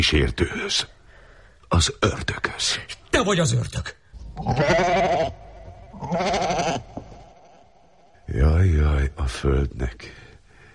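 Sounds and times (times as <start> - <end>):
speech: 0.0 - 1.0, 1.7 - 5.4, 6.0 - 7.0, 8.3 - 10.2
goat bleating: 4.4 - 7.6.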